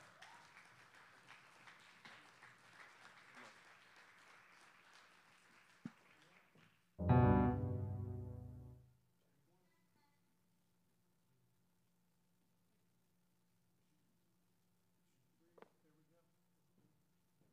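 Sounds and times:
audience applause: 0.0 - 7.4
loud sustained musical chord: 7.0 - 8.8.

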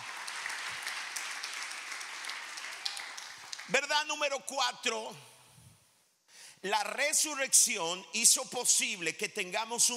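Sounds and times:
audience applause: 0.0 - 3.8
speech: 3.7 - 5.3, 6.6 - 9.9.

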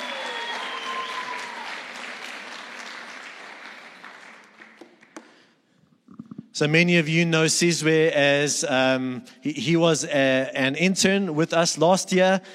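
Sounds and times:
round of applause: 0.0 - 5.5
speech: 6.6 - 12.5.

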